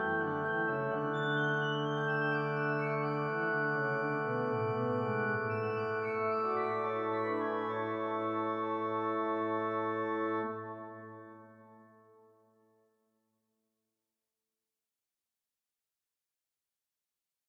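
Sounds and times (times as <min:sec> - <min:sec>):
organ: 0:00.0 - 0:12.2.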